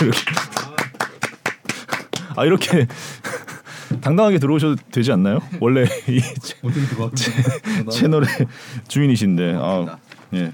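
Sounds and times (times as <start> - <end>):
speech: 0.0 - 0.4, 2.4 - 3.3, 3.9 - 10.5
people clapping in a studio: 0.0 - 2.8
laughter: 5.4 - 8.6.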